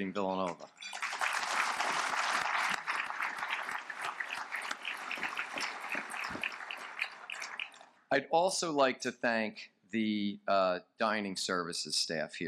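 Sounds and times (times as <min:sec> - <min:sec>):
speech: 0:00.0 - 0:00.9, 0:08.1 - 0:12.4
crowd applauding: 0:00.8 - 0:07.8.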